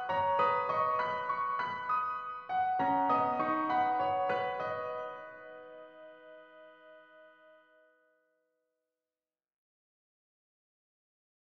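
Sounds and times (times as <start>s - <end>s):
piano prelude in B: 0.0s - 7.8s.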